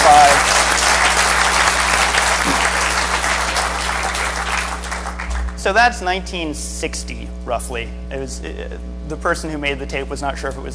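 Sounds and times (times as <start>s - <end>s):
audience applause: 0.0s - 5.6s
speech: 5.7s - 10.7s.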